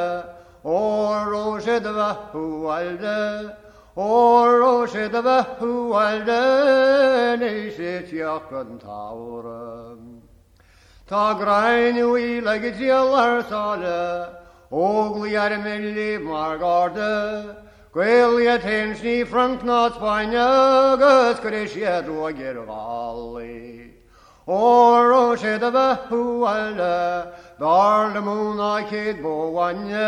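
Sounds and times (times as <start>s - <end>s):
traditional Irish unaccompanied singing: 0.0s - 10.3s, 11.1s - 30.0s.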